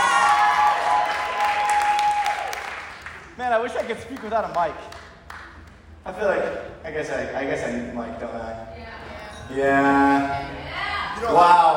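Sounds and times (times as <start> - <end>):
crowd clapping: 0.0 - 6.0
speech: 3.6 - 5.0, 6.1 - 11.7
thin tonal whine: 6.6 - 11.7.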